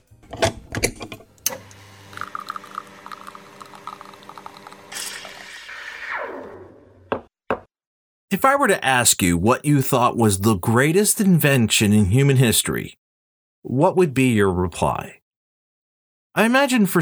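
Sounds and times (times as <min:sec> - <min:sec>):
espresso machine clicking: 0:01.5 - 0:04.8
espresso machine pump buzzing: 0:01.5 - 0:06.0
liquid trickling: 0:02.0 - 0:05.5
speech: 0:08.4 - 0:13.0, 0:13.6 - 0:15.2, 0:16.4 - 0:17.0.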